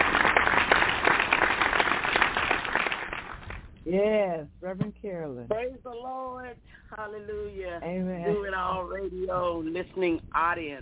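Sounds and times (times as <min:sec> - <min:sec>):
crowd applauding: 0:00.0 - 0:03.7
speech: 0:03.9 - 0:10.8.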